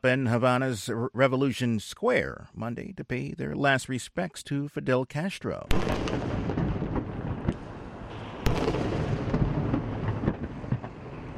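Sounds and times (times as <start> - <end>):
speech: 0.0 - 6.4
cannon booms of a 21-gun salute in Havana: 5.7 - 11.3.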